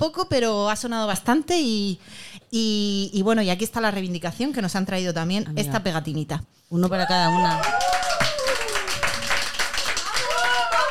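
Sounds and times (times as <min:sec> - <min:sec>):
speech: 0:00.0 - 0:08.0
steady applause from a group: 0:07.4 - 0:10.9.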